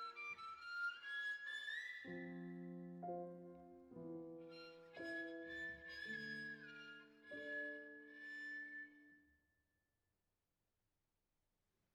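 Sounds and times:
violin playing folk dance: 0:00.0 - 0:09.1
piano playing folk dance: 0:00.0 - 0:09.3.

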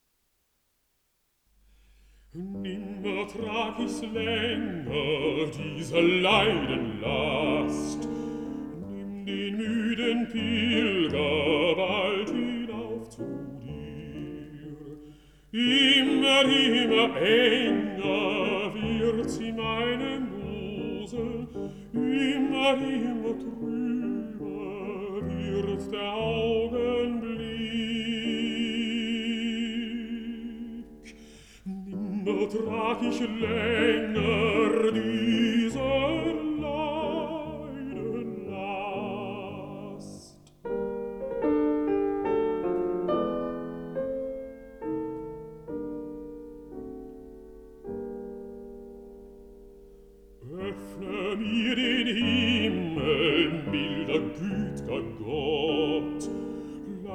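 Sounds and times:
piano: 0:01.4 - 0:57.1
person singing: 0:02.3 - 0:40.6, 0:50.4 - 0:57.1.

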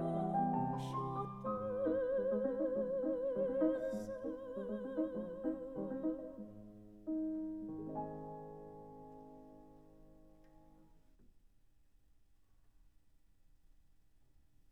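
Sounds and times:
person singing: 0:00.0 - 0:06.5
piano: 0:00.0 - 0:11.3.

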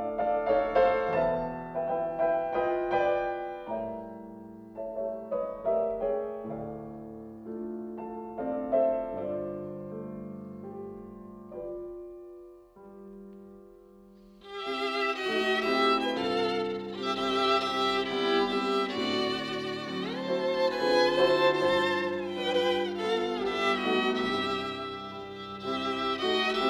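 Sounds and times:
violin: 0:00.0 - 0:04.5, 0:14.4 - 0:26.6
piano: 0:00.0 - 0:26.6.

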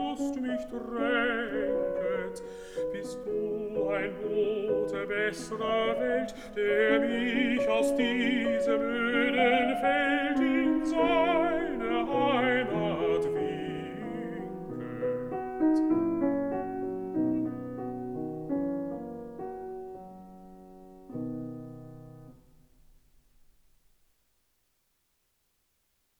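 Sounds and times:
person singing: 0:00.0 - 0:17.8
piano: 0:00.0 - 0:24.4.

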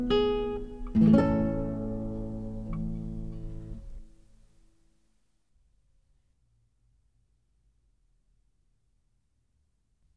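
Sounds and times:
prelude in D minor: 0:00.0 - 0:04.1.

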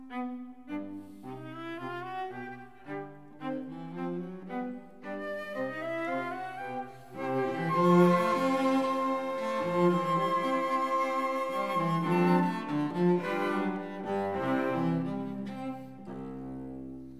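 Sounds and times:
cello: 0:00.0 - 0:17.1
violin: 0:00.0 - 0:17.1
flute: 0:05.0 - 0:15.7.

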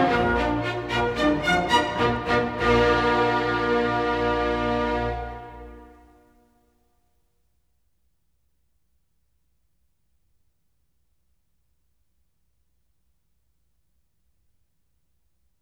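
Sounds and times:
symphony in B flat major molto allegro: 0:00.0 - 0:06.0.

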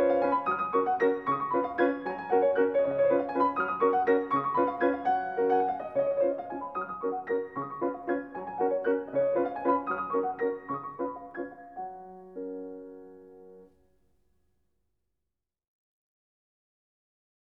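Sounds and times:
piano waltz in G flat: 0:00.0 - 0:13.9.

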